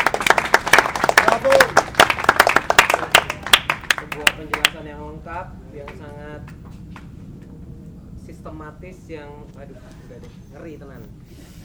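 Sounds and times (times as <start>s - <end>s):
audience applause: 0.0s - 4.8s
speech: 5.2s - 6.7s, 8.4s - 11.6s.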